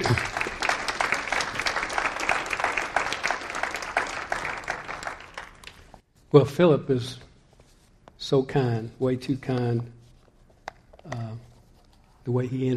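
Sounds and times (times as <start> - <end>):
speech: 0.0 - 0.4, 6.3 - 7.3, 8.2 - 10.0, 12.2 - 12.7
audience applause welcoming a speaker: 0.0 - 5.9.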